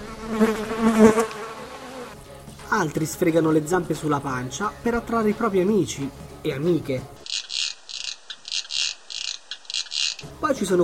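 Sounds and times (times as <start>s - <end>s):
insect wings beating and buzzing: 0.0s - 2.3s, 7.2s - 10.4s
speech: 0.3s - 1.0s, 2.8s - 7.2s, 10.5s - 10.8s.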